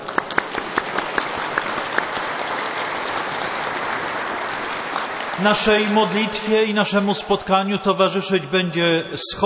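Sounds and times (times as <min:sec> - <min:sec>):
audience applause: 0:00.0 - 0:07.2
speech: 0:05.4 - 0:09.4.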